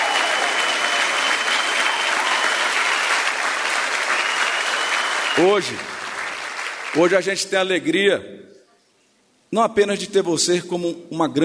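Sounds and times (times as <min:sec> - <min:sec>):
audience applause: 0:00.0 - 0:07.2
speech: 0:05.4 - 0:05.9, 0:06.9 - 0:08.5, 0:09.5 - 0:11.4.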